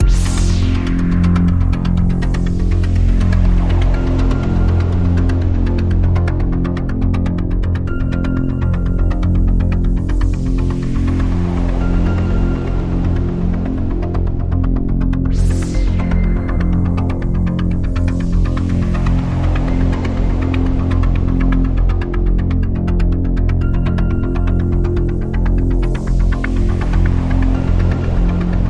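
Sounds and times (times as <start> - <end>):
synth pad: 0.0 - 28.6.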